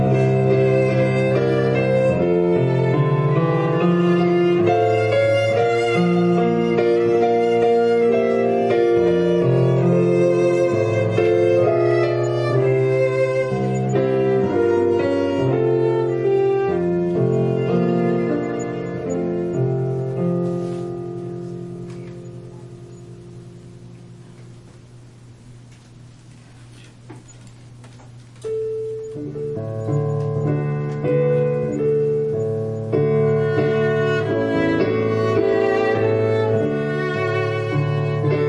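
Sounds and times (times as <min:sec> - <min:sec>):
violin playing a prelude: 0:00.0 - 0:20.4, 0:30.9 - 0:38.4
piano playing a prelude: 0:00.0 - 0:38.4.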